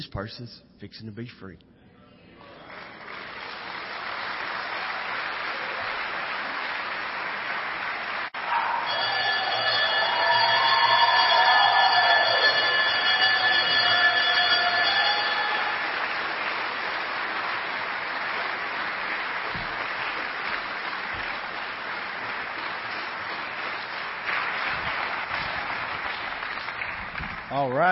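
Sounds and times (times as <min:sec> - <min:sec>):
speech: 0:00.0 - 0:01.8
crowd noise: 0:01.9 - 0:27.8
bell ringing: 0:08.5 - 0:18.6.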